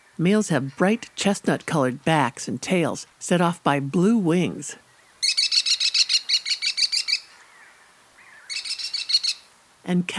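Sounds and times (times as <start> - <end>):
speech: 0.2 - 4.8, 9.9 - 10.1
American kestrel calling shrill klee notes: 5.0 - 9.5.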